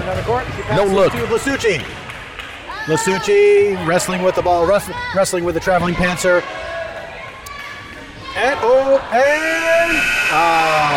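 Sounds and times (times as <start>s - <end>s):
speech: 0.1s - 2.0s, 2.8s - 6.6s, 8.4s - 10.9s
voice imitating a halftime buzzer: 9.6s - 10.9s.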